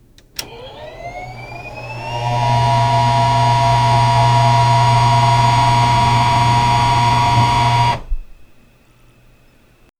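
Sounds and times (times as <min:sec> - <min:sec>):
time machine powering up and activating: 0:00.4 - 0:08.3.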